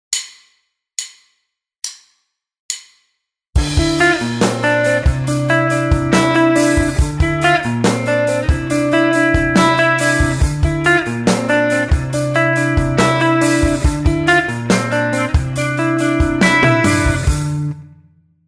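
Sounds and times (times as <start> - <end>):
guitar riff: 3.6 - 18.0.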